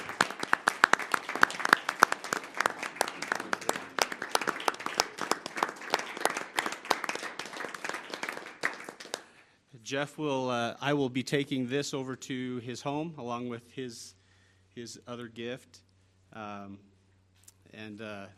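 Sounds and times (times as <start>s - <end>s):
round of applause: 0.0s - 9.4s
speech: 9.9s - 14.2s, 14.8s - 15.8s, 16.4s - 16.9s, 17.8s - 18.3s.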